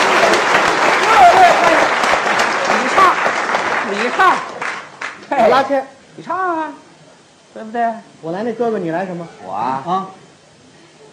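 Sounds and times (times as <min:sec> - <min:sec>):
audience applause: 0:00.0 - 0:05.4
speech: 0:05.3 - 0:06.9, 0:07.6 - 0:10.2.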